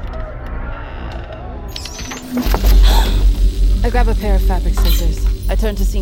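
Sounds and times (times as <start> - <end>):
shock prod buzzing: 1.7 - 6.0
speech: 2.3 - 6.0.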